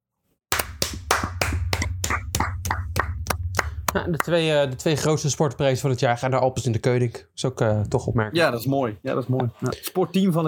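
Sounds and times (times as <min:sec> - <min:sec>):
applause: 0:00.5 - 0:03.8
speech: 0:03.9 - 0:10.4.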